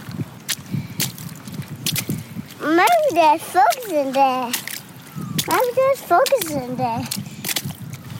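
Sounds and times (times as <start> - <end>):
rain splashing on gumboots: 0.0 - 8.1
speech: 2.6 - 4.6, 5.5 - 7.2.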